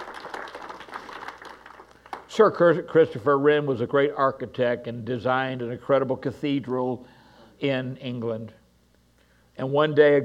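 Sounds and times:
audience applauding: 0.0s - 2.4s
speech: 2.4s - 8.6s, 9.6s - 10.2s.

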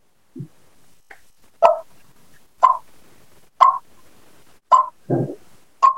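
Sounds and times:
raspy Eastern turkey clucks made by a person on a mouth call: 1.6s - 1.9s, 2.6s - 2.8s, 3.6s - 3.8s, 4.7s - 5.0s.

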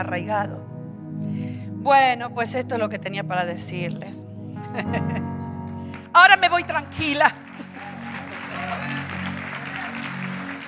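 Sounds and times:
speech: 0.0s - 5.3s, 6.2s - 7.4s
audience applause: 7.0s - 10.6s.

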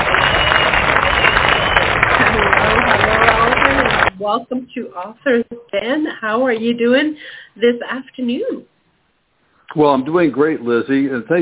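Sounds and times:
round of applause: 0.0s - 4.2s
speech: 4.2s - 8.7s, 9.7s - 11.4s.

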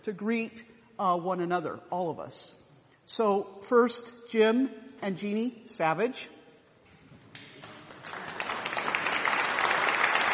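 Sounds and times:
speech: 0.0s - 6.4s
audience applause: 7.6s - 10.3s.

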